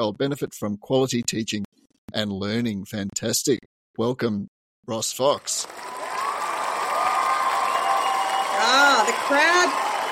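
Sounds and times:
speech: 0.0s - 6.0s, 9.3s - 9.8s
crowd applauding: 5.4s - 10.0s.

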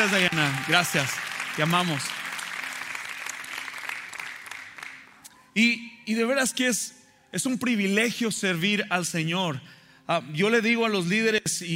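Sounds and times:
speech: 0.0s - 2.2s, 5.6s - 11.7s
audience applause: 0.0s - 5.1s.

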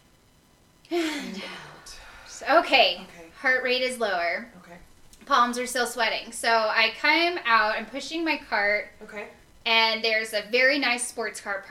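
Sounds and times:
deep breath during a calming exercise: 0.9s - 2.5s
speech: 2.4s - 11.6s.

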